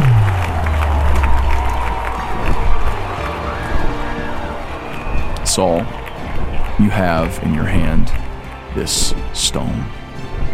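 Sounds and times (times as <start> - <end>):
deep low rumble: 0.0 - 6.8
scattered shouts: 0.0 - 7.1
large crowd cheering: 0.0 - 10.5
speech: 5.6 - 6.0, 6.8 - 8.2, 8.8 - 10.0.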